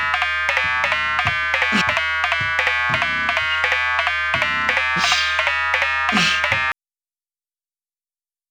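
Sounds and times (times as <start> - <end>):
dubstep music: 0.0 - 6.7.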